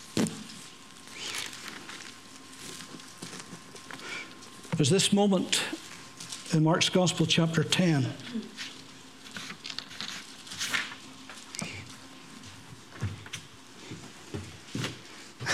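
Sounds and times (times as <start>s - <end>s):
low steady hum: 0.0s - 15.5s
paper rustling around feet: 0.3s - 4.7s, 8.6s - 11.8s
speech: 4.8s - 5.8s, 6.5s - 8.5s.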